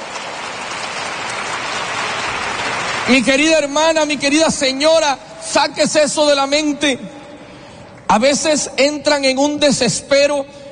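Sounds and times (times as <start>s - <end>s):
audience applauding: 0.0s - 4.0s
speech: 3.1s - 7.2s, 8.1s - 10.6s.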